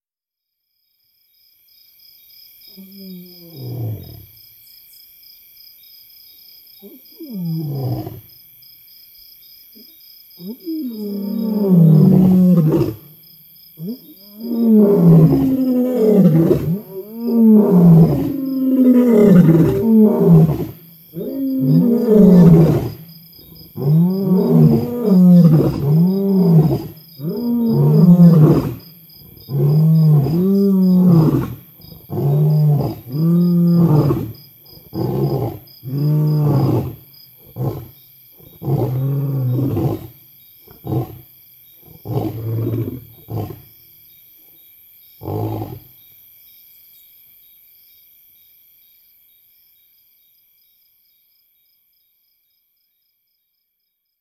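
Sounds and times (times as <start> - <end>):
roar: 2.7 - 4.4, 6.8 - 8.3, 9.8 - 13.2, 13.8 - 43.8, 45.2 - 46.0.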